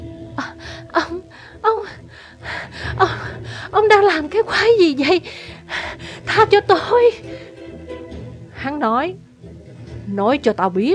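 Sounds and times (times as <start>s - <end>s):
woman gasping and panting for breath: 0.4s - 3.8s, 5.2s - 6.3s
speech: 3.0s - 7.3s, 8.6s - 9.2s, 10.1s - 10.9s.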